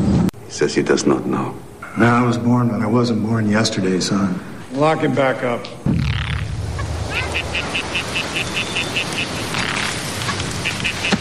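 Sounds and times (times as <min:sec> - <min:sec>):
rumbling noise: 0:00.0 - 0:11.2
speech: 0:00.5 - 0:06.2
frog croaking: 0:06.0 - 0:11.2.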